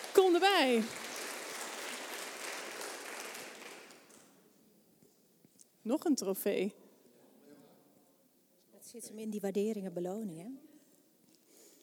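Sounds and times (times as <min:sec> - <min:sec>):
audience applause: 0:00.0 - 0:04.3
speech: 0:00.3 - 0:01.0, 0:05.8 - 0:06.8, 0:08.9 - 0:10.7.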